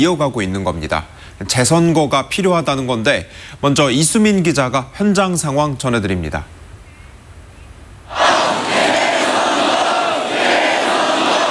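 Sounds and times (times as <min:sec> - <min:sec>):
speech: 0:00.0 - 0:06.6
protest crowd shouting: 0:08.1 - 0:11.4.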